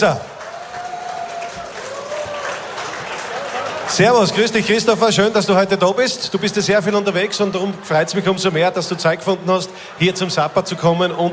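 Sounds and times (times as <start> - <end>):
speech: 0.0 - 0.3, 3.9 - 11.3
audience applause: 0.0 - 5.2.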